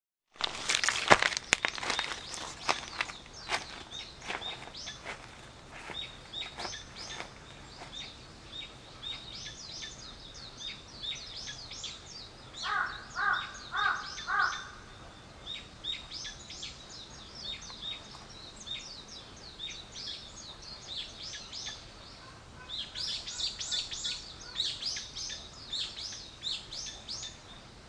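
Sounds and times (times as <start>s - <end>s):
birds chirping and twittering: 0.4s - 27.8s
loud harsh caws: 12.6s - 14.9s.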